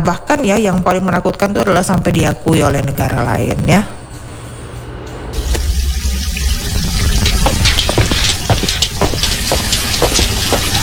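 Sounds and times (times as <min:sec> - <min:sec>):
speech: 0:00.0 - 0:04.0
tap running water from the PDAM municipal supply: 0:05.4 - 0:10.8.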